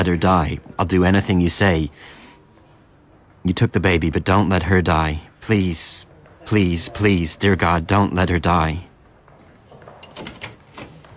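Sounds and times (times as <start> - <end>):
speech: 0.0 - 2.2, 3.4 - 8.9
hospital room door being opened: 9.7 - 11.1.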